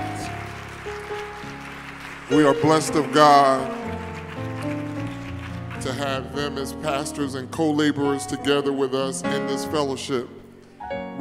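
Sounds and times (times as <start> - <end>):
audience applauding with hand claps: 0.0 - 7.2
speech: 2.3 - 3.9, 5.8 - 10.4.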